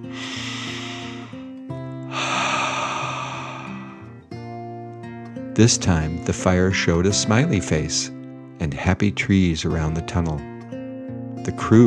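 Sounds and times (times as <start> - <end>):
storyteller performing a dragon's deep breath: 0.0 - 4.3
speech: 5.6 - 10.5, 11.4 - 11.8.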